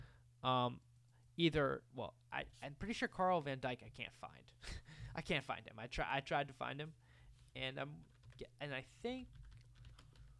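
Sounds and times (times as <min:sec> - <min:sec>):
speech: 0:00.4 - 0:07.0, 0:07.6 - 0:09.4
typing on a computer keyboard: 0:08.0 - 0:08.5, 0:09.2 - 0:10.3.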